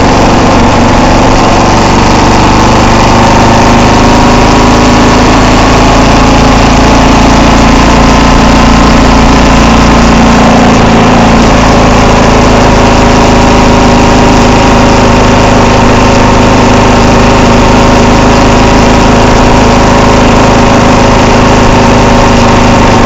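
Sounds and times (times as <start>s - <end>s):
KLR650 motorcycle riding: 0.0s - 23.0s.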